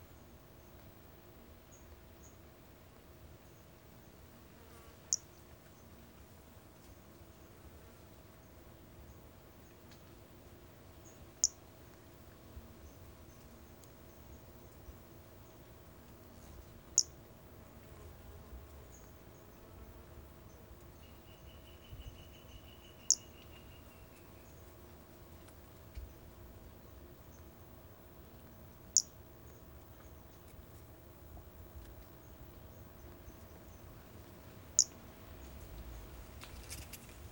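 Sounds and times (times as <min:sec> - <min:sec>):
low continuous hum: 0:00.0 - 0:37.2
pumpkin toadlet chirp: 0:21.4 - 0:24.0, 0:34.8 - 0:35.0.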